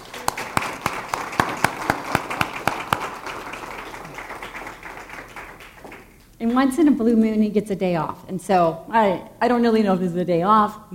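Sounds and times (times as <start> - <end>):
applause: 0.0 - 6.3
speech: 6.4 - 10.9.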